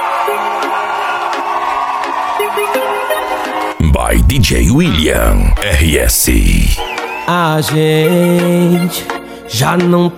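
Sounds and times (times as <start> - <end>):
crowd shouting and cheering: 0.0 - 7.7
speech: 2.6 - 10.1.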